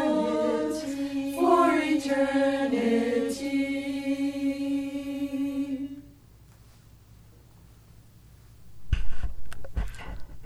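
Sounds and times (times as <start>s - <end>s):
choir singing a melody: 0.0s - 6.2s.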